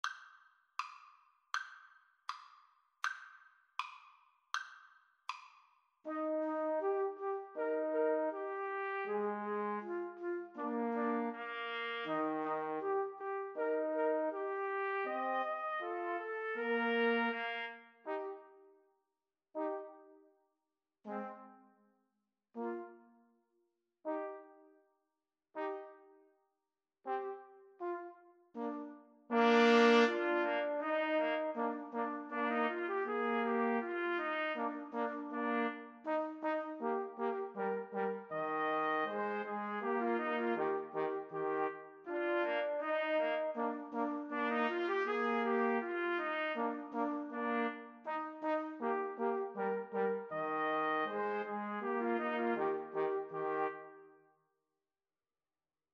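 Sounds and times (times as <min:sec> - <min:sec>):
trombone: 0:06.1 - 0:18.5, 0:19.6 - 0:20.0, 0:21.1 - 0:21.6, 0:22.6 - 0:23.0, 0:24.1 - 0:24.5, 0:25.6 - 0:26.1, 0:27.1 - 0:54.0
two trumpets: 0:06.1 - 0:18.5, 0:21.1 - 0:21.6, 0:25.6 - 0:26.0, 0:27.1 - 0:54.0.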